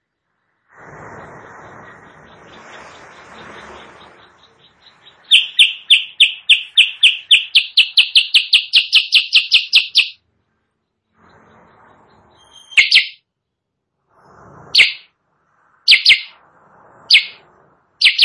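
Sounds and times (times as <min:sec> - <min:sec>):
sooty-headed bulbul song: 0:04.3 - 0:10.2, 0:12.5 - 0:13.2, 0:14.8 - 0:15.1, 0:15.9 - 0:16.4, 0:17.1 - 0:17.4, 0:18.0 - 0:18.2.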